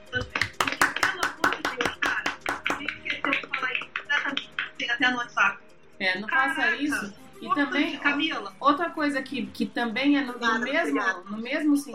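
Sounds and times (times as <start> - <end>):
hand clapping: 0.1 - 4.8
speech: 5.1 - 11.9.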